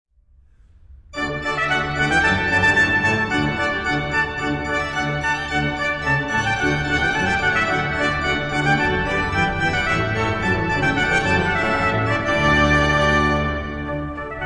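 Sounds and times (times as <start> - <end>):
trumpet: 1.2 - 14.4.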